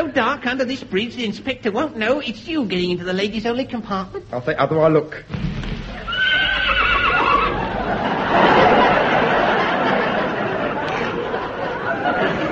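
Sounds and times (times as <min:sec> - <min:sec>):
speech: 0:00.0 - 0:05.6
horse whinnying: 0:05.9 - 0:07.7
laughter: 0:06.0 - 0:12.5.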